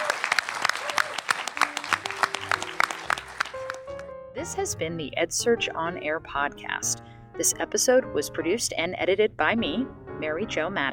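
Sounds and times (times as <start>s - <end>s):
audience applause for panelists: 0.0s - 4.0s
speech: 4.4s - 10.9s.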